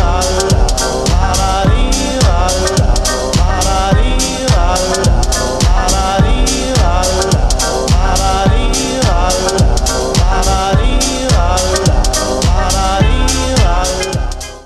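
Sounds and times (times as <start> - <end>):
slowed reverb music: 0.0 - 14.6.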